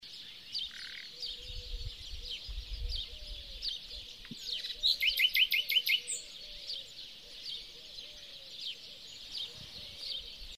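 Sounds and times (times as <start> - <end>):
Luscinia megarhynchos singing: 0.0 - 10.5.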